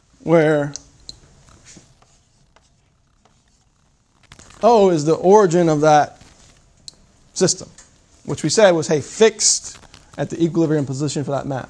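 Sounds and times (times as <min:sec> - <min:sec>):
speech: 0:00.2 - 0:00.8, 0:04.6 - 0:06.2, 0:07.4 - 0:11.6
writing on a board during a lecture: 0:01.6 - 0:03.7.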